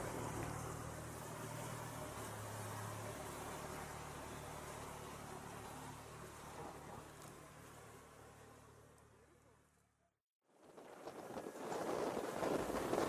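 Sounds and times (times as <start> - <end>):
small fishing-area boat engine roaring as it speeds up at sea: 0.0 - 9.8, 11.2 - 13.0
wind rushing across the microphone at sea: 10.6 - 13.0.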